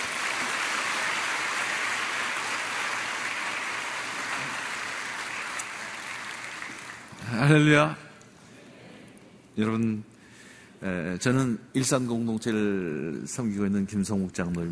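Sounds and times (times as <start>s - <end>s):
audience applause welcoming a speaker: 0.0s - 7.7s
speech: 7.3s - 8.0s, 9.6s - 10.1s, 10.8s - 14.7s.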